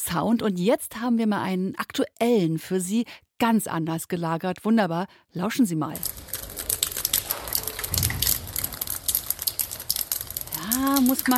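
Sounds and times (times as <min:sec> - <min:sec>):
speech: 0:00.1 - 0:06.2, 0:10.8 - 0:11.3
rain falling in a backyard: 0:06.0 - 0:11.3.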